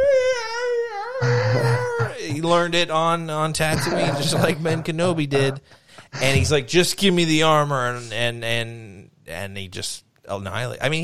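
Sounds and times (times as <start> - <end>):
voice imitating an eerie howling scream: 0.0 - 2.2
laughter: 1.2 - 2.7, 3.6 - 6.7
speech: 2.3 - 11.0.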